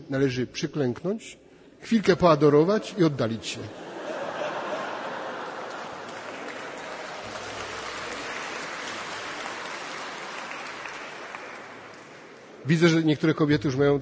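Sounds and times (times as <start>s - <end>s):
speech: 0.1s - 3.9s, 12.7s - 14.0s
laughter: 3.6s - 8.0s
men in the audience clapping: 5.4s - 12.6s.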